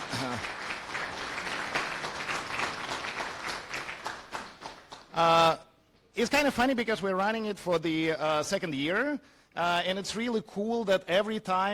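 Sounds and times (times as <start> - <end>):
audience round of applause: 0.0 - 5.1
speech: 5.2 - 5.6, 6.2 - 11.7.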